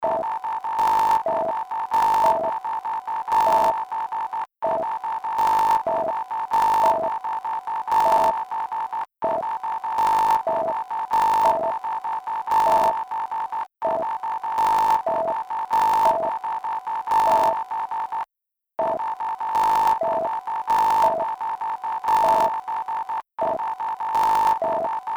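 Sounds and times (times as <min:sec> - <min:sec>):
sine tone: 0:00.0 - 0:18.2, 0:18.9 - 0:25.1.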